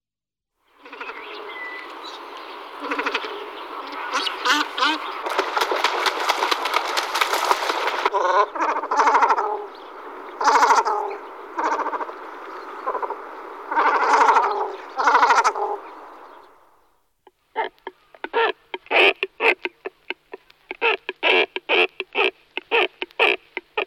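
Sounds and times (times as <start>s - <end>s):
Great cormorant croaking calls: 0.8s - 1.6s, 2.7s - 23.8s.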